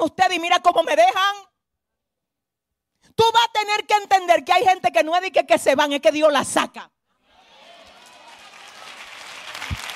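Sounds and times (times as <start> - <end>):
speech: 0.0 - 1.5, 3.2 - 7.0
audience applause: 7.4 - 9.9.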